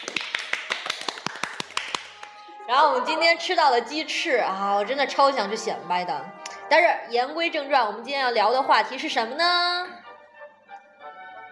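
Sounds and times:
small group clapping at a get-together over tea and a meal: 0.0 - 2.6
speech: 2.7 - 9.8.

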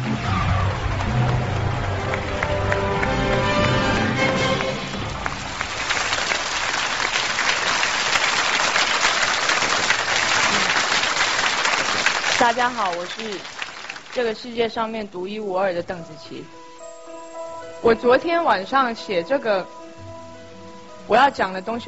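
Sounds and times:
audience applause: 0.0 - 14.4
speech: 12.5 - 16.6, 17.8 - 19.8, 21.1 - 21.8.

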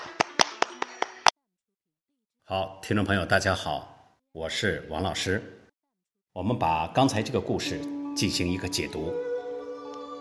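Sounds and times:
crisp evenly spaced claps: 0.0 - 1.3
speech: 2.5 - 5.6, 6.4 - 9.3.

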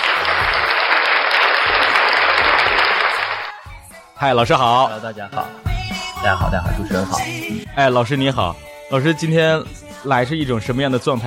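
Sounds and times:
audience applause: 0.0 - 3.6
speech: 4.2 - 5.6, 6.2 - 11.2.

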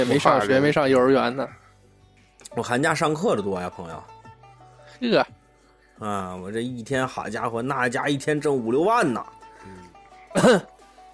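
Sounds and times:
speech: 0.0 - 1.6, 2.5 - 4.2, 5.0 - 5.4, 6.0 - 10.7
throaty cough: 10.3 - 10.8.

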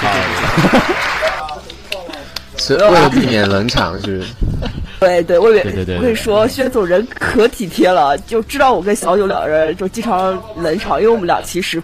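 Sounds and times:
applause: 0.0 - 2.5
laughter: 0.0 - 6.5
speech: 0.6 - 1.3, 2.7 - 11.8.

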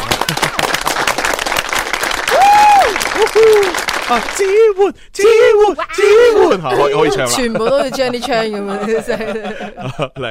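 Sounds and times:
applause: 0.0 - 4.6
speech: 3.3 - 10.2
laughter: 5.5 - 10.2.

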